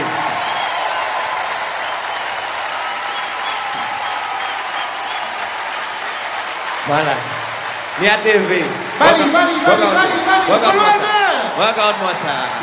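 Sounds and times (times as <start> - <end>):
audience applause: 0.0 - 12.6
speech: 6.9 - 7.4, 8.0 - 12.6.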